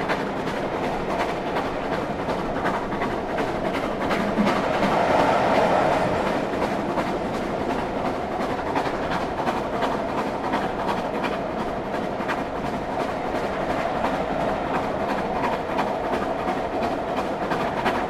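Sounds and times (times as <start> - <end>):
train departing York: 0.0 - 18.0.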